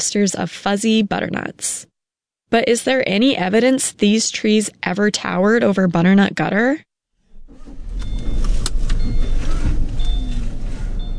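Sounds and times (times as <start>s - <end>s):
speech: 0.0s - 1.9s, 2.5s - 6.9s
car engine rumble while driving: 7.3s - 11.1s
faint high whines and clicks: 7.5s - 11.1s
road noise: 7.5s - 11.1s.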